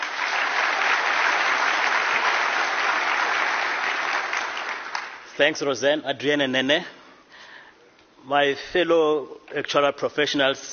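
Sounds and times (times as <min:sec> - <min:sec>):
round of applause for speakers: 0:00.0 - 0:05.4
speech: 0:05.4 - 0:07.0, 0:08.2 - 0:10.7.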